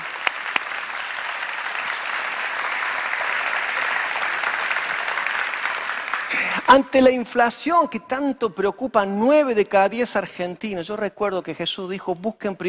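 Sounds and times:
crowd applause: 0.0 - 6.9
speech: 6.7 - 12.6.

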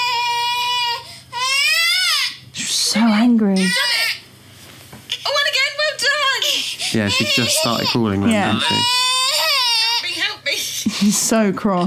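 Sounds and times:
baby crying: 0.0 - 2.4, 3.6 - 4.2, 5.1 - 10.8
speech: 3.0 - 3.8, 6.9 - 9.0, 11.0 - 11.8.

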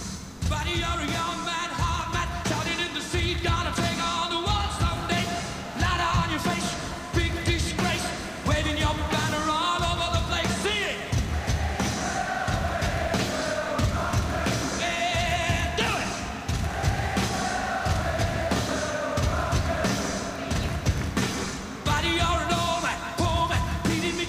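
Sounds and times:
rock band music: 0.0 - 24.2
stadium crowd cheering and singing along at a rock concert at Wembley: 1.0 - 24.2.

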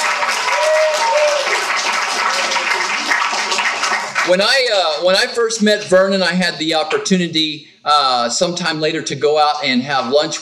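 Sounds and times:
faint cheers: 0.0 - 3.0
crowd applause: 0.0 - 5.3
speech: 4.3 - 10.3.

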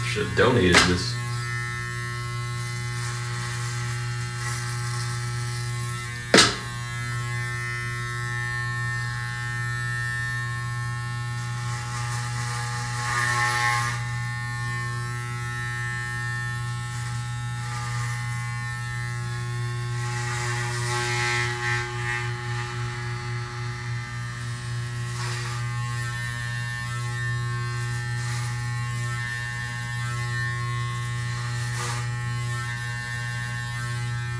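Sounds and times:
electric hair clippers cutting hair: 0.0 - 34.3
speech: 0.2 - 1.2
sharp click: 6.4 - 6.7.

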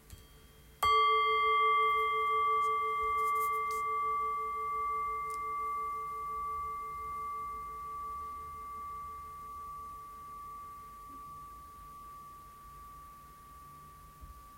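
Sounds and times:
meditation bell ringing: 0.0 - 14.5.

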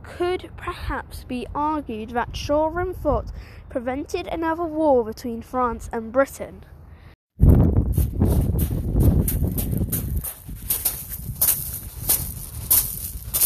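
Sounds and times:
speech: 0.1 - 6.7
footsteps on stone pebbles on the top floor of Shoreham Fort: 7.6 - 13.4.

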